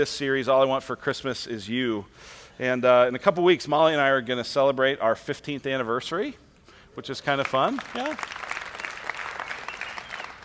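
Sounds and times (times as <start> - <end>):
speech: 0.0 - 6.4, 7.0 - 8.4
polite audience applause: 7.4 - 10.4.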